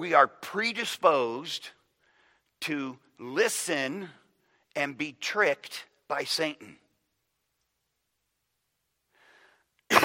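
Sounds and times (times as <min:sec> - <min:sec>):
speech: 0:00.0 - 0:01.8, 0:02.6 - 0:04.2, 0:04.8 - 0:06.8
intake of breath: 0:02.0 - 0:02.5, 0:09.1 - 0:09.7.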